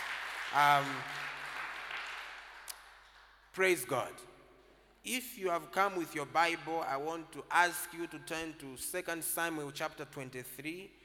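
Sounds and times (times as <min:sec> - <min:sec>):
audience clapping: 0:00.0 - 0:04.0
speech: 0:00.5 - 0:01.2, 0:03.6 - 0:04.3, 0:05.0 - 0:11.0.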